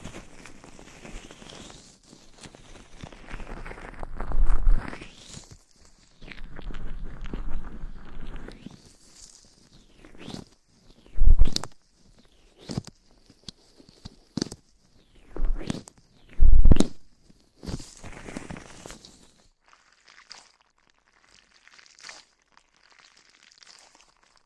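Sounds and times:
microphone scratching and brushing: 3.4s - 5.0s, 6.2s - 8.6s, 11.2s - 11.8s, 15.3s - 17.1s.

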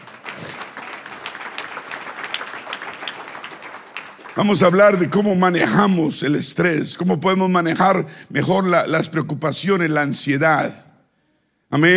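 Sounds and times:
audience applause: 0.0s - 5.1s
speech: 4.4s - 10.9s, 11.7s - 11.9s.

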